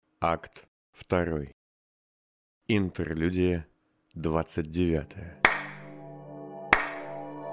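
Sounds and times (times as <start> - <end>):
speech: 0.2 - 1.6, 2.7 - 5.4
steady low musical drone: 5.1 - 7.5
person clapping hands: 5.4 - 5.9, 6.7 - 7.2.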